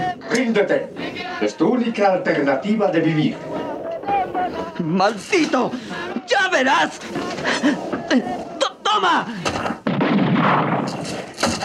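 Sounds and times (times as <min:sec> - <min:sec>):
speech: 0:00.4 - 0:03.6, 0:04.8 - 0:08.4, 0:09.0 - 0:09.5
laughter: 0:03.3 - 0:09.5
automatic rifle gunfire in a radio drama: 0:09.4 - 0:11.6.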